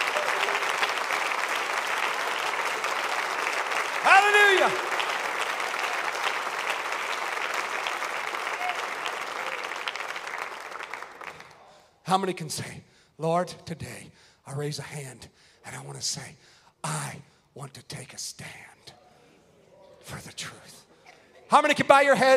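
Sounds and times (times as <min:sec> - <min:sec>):
audience hand clapping: 0:00.0 - 0:11.8
speech: 0:12.1 - 0:18.7, 0:20.1 - 0:20.8, 0:21.5 - 0:22.3.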